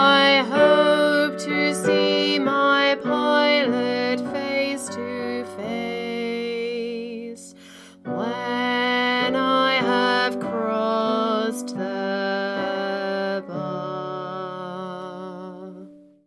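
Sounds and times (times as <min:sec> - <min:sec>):
choir singing: 0:00.0 - 0:07.0
tenor singing: 0:00.0 - 0:15.9.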